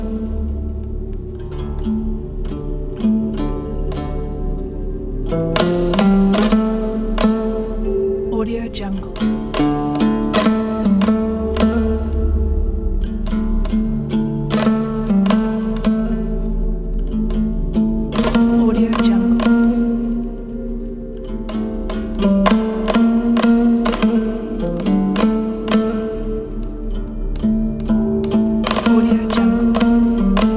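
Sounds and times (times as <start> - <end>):
Kazakh dombyra: 0.0 - 30.5.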